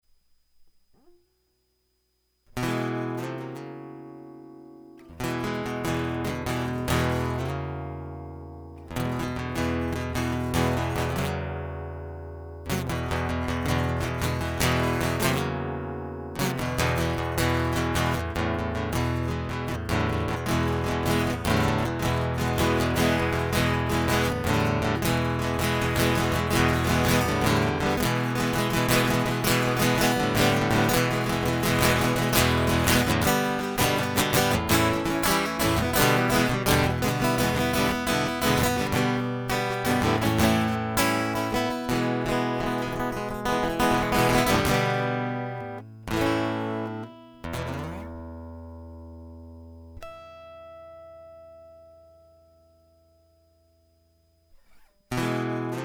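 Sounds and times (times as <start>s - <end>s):
guitar loop: 2.4s - 55.8s.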